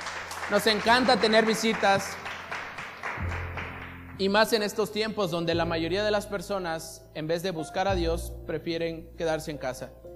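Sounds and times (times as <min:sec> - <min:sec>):
audience applause: 0:00.0 - 0:04.2
speech: 0:00.5 - 0:02.3, 0:04.2 - 0:10.1.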